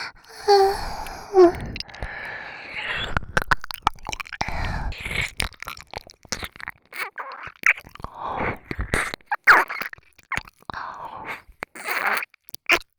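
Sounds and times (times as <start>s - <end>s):
ear licking sounds: 0.2s - 12.9s
person moaning: 0.4s - 2.0s.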